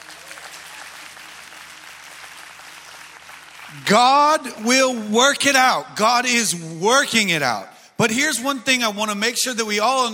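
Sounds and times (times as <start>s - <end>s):
audience applauding the worship team: 0.0s - 4.2s
speech: 3.7s - 10.1s.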